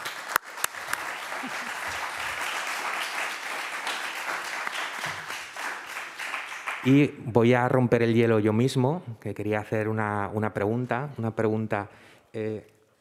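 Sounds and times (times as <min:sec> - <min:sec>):
audience applause: 0:00.0 - 0:07.0
speech: 0:01.4 - 0:01.7, 0:06.8 - 0:12.8.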